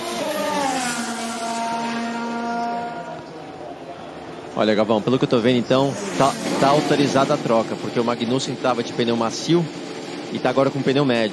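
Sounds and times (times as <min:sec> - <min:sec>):
Formula 1 car engines whining at the 2016 Australian Grand Prix: 0:00.0 - 0:11.3
speech: 0:04.6 - 0:11.3.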